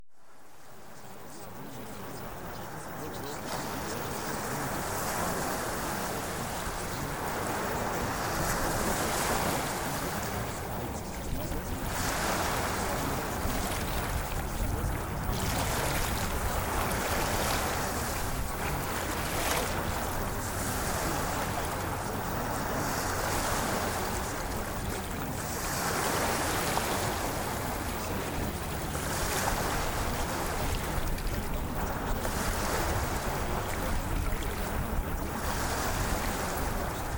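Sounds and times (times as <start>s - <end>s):
ocean waves: 0.1s - 37.1s.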